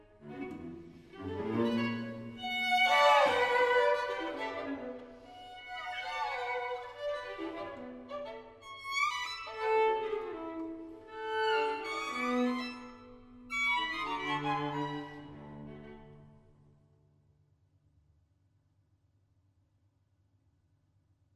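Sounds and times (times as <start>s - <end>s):
string quartet: 0.0s - 16.6s.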